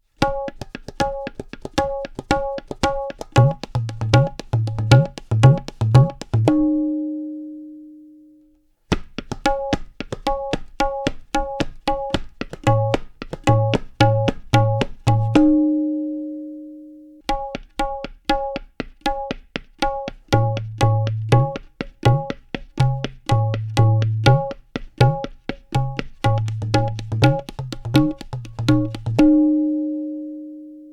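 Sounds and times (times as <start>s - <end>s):
flamenco palos music: 0.2s - 6.8s, 8.9s - 15.6s, 17.3s - 29.8s.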